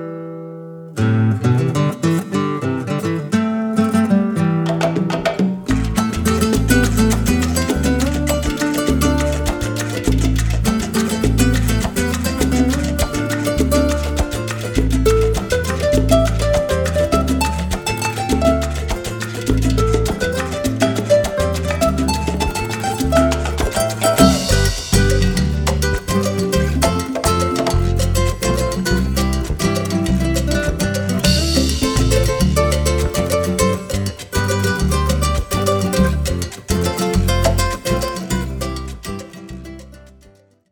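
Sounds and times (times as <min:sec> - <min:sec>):
salsa flamenca music: 0:01.0 - 0:40.5.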